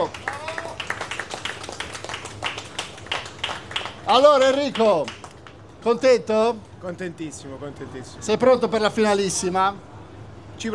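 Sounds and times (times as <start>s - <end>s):
audience clapping: 0.0s - 5.9s
low hum: 0.0s - 10.7s
speech: 4.1s - 5.2s, 5.8s - 9.9s.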